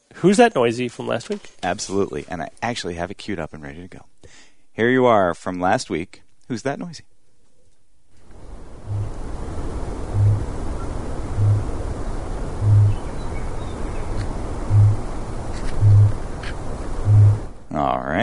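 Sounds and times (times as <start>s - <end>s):
speech: 0.2s - 7.1s, 17.8s - 18.2s
windy noise: 8.4s - 17.6s
kakapo booming call: 8.9s - 9.2s, 10.1s - 11.8s, 12.6s - 13.5s, 14.7s - 15.1s, 15.8s - 16.2s, 17.0s - 17.5s.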